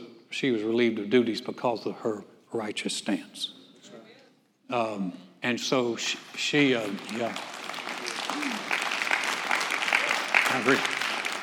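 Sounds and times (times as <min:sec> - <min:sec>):
speech: 0:00.3 - 0:03.6, 0:04.7 - 0:07.6, 0:08.4 - 0:08.7, 0:10.5 - 0:11.0
audience applause: 0:06.6 - 0:11.4
people whooping: 0:08.0 - 0:09.0.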